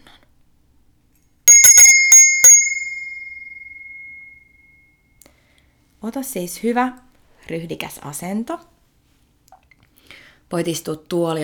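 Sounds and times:
bright metallic bell ringing: 0:01.5 - 0:04.8
speech: 0:06.0 - 0:08.7, 0:10.5 - 0:11.4.

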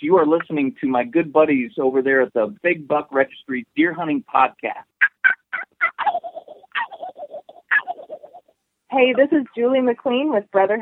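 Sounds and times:
speech: 0:00.0 - 0:05.4, 0:08.9 - 0:10.8
turkey gobbling: 0:05.0 - 0:08.5.

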